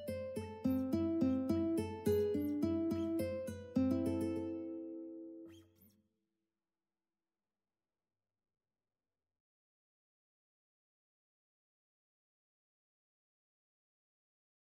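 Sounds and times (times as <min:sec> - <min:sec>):
ukulele playing a classical piece: 0:00.0 - 0:05.4.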